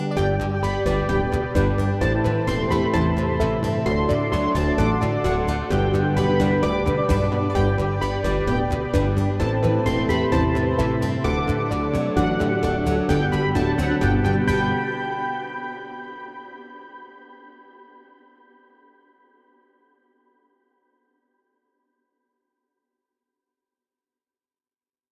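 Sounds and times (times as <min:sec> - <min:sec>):
instrumental music: 0:00.0 - 0:16.4.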